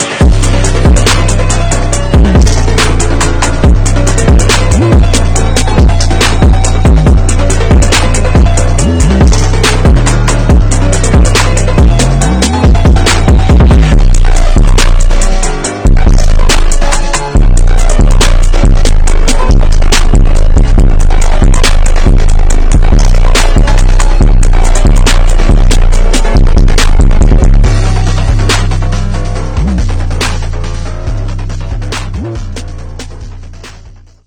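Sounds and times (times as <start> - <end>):
instrumental music: 0.0 - 34.2.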